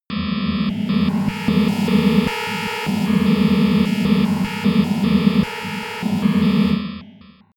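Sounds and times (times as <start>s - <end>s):
atmosphere: 0.1s - 7.5s.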